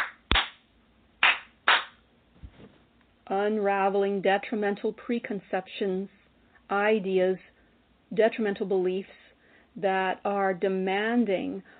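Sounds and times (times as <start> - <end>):
hand claps: 0.0 - 2.0
speech: 3.3 - 7.5, 8.1 - 9.2, 9.8 - 11.7.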